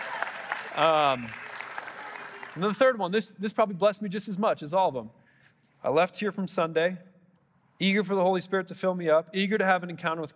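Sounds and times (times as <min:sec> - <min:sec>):
audience applause: 0:00.0 - 0:02.9
speech: 0:00.8 - 0:01.4, 0:02.6 - 0:05.2, 0:05.8 - 0:07.1, 0:07.8 - 0:10.3.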